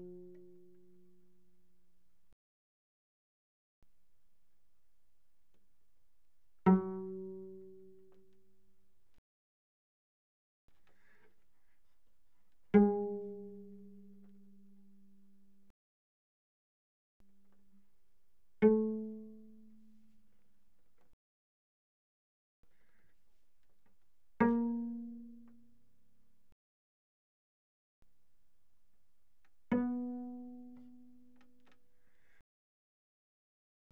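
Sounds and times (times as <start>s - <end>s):
cello pizzicato on the D string: 0.0s - 1.6s, 6.6s - 8.7s, 10.8s - 15.2s, 18.6s - 20.2s, 24.3s - 26.0s, 29.7s - 32.2s.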